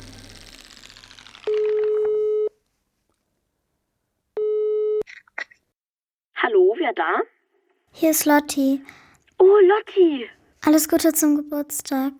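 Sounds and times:
telephone tone after picking up receiver: 0:01.4 - 0:02.6, 0:04.4 - 0:05.0
speech: 0:06.9 - 0:07.3, 0:08.0 - 0:12.1.

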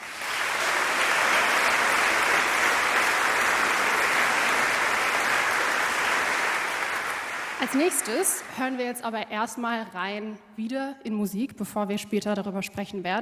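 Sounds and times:
audience applause: 0:00.0 - 0:09.0
speech: 0:07.6 - 0:13.1.

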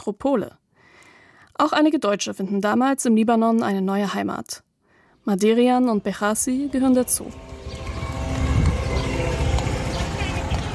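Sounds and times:
speech: 0:00.0 - 0:00.6, 0:01.6 - 0:04.6, 0:05.2 - 0:07.5
Israeli drones buzzing over Beirut: 0:06.7 - 0:10.7.

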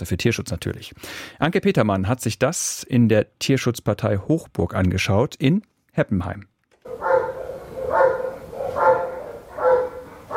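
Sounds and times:
speech: 0:00.0 - 0:06.5
Belgian shepherd dog barking in kennel: 0:06.9 - 0:10.3.

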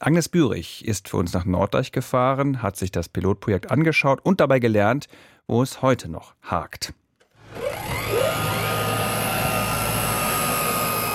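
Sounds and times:
speech: 0:00.0 - 0:07.0
cargo drone being prepared for takeoff at Norden-Norddeich airfield: 0:07.4 - 0:11.1.

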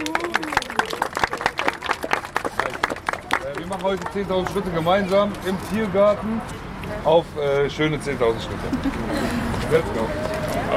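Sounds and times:
group applause: 0:00.0 - 0:04.7
speech: 0:03.7 - 0:10.7.

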